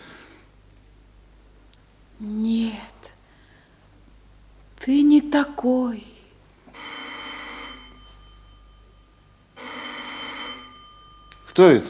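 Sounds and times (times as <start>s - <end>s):
speech: 2.2s - 2.5s, 4.9s - 6.1s, 11.6s - 11.8s
telephone bell ringing: 6.7s - 11.7s.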